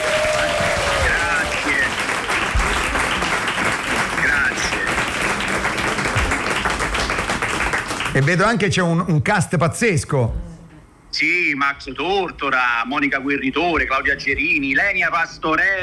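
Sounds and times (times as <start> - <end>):
audience applause: 0.0 - 8.7
speech: 8.2 - 10.5, 11.1 - 15.8.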